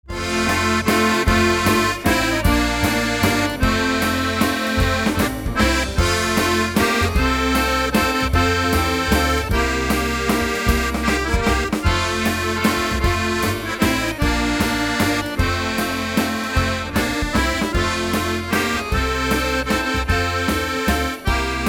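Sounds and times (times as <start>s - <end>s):
waltz medley: 0.0s - 21.6s.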